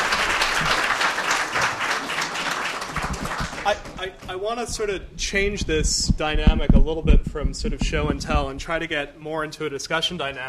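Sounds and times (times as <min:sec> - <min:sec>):
crowd applauding: 0:00.0 - 0:04.2
speech: 0:03.7 - 0:10.4.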